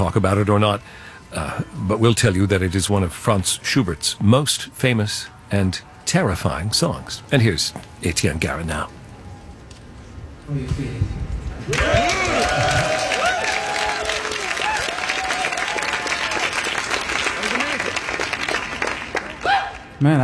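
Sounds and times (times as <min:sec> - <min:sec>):
speech: 0:00.0 - 0:09.0, 0:10.5 - 0:13.0, 0:20.0 - 0:20.2
audience applause after a song performance: 0:11.6 - 0:20.0.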